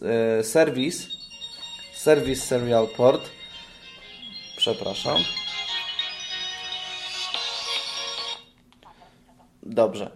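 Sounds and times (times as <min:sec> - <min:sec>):
speech: 0:00.0 - 0:01.2, 0:02.0 - 0:03.4, 0:04.6 - 0:05.4, 0:09.8 - 0:10.1
mobile phone ringing: 0:00.5 - 0:08.6.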